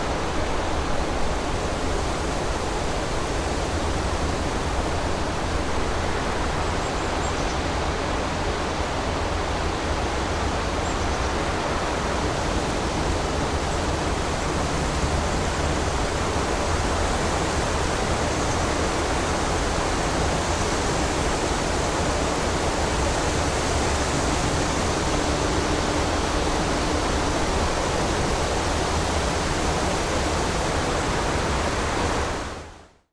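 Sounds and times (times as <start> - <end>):
wind in a forest: 0.0 - 33.1.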